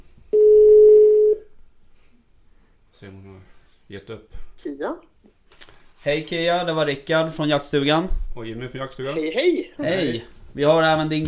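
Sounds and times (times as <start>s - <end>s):
telephone ringback tone: 0.4s - 1.4s
speech: 3.0s - 5.4s, 6.0s - 11.2s.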